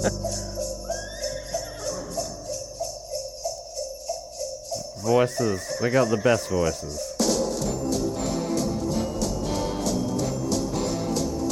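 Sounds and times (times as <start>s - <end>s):
speech: 0.0s - 0.4s, 5.0s - 7.1s
Christmas pop song: 0.0s - 1.5s, 2.1s - 11.4s
sleigh bells jingling: 0.0s - 11.4s
horse whinny: 0.2s - 2.5s, 5.0s - 7.0s.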